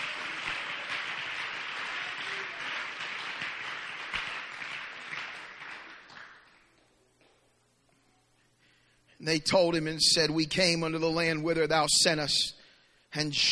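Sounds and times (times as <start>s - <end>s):
audience clapping hands: 0.0s - 7.4s
speech: 9.2s - 12.6s, 13.2s - 13.5s.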